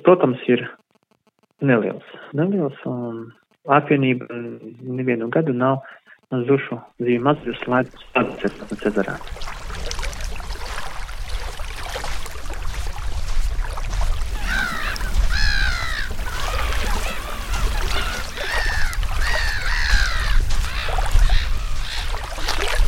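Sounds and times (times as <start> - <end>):
speech: 0.0 - 0.8, 1.6 - 10.0
low rumbling water noise: 7.2 - 22.8
small lake waves lapping against the shore: 7.2 - 22.8
seagulls crying: 14.0 - 22.8.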